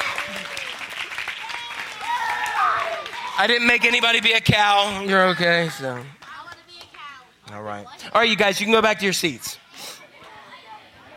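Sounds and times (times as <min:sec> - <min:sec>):
cheers and whoops: 0:00.0 - 0:03.9
audience applauding the cast: 0:00.0 - 0:06.2
speech: 0:03.4 - 0:06.2, 0:07.5 - 0:10.0.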